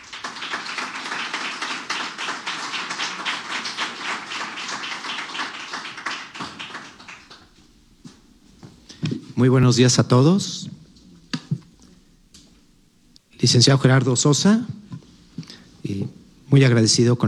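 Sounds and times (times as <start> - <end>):
audience applause: 0.0 - 8.1
speech: 9.4 - 10.6, 13.4 - 14.8, 16.5 - 17.2.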